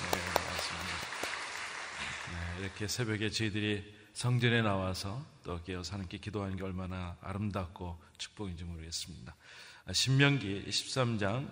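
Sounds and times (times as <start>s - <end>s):
small group clapping together: 0.0s - 3.0s
speech: 2.6s - 11.5s.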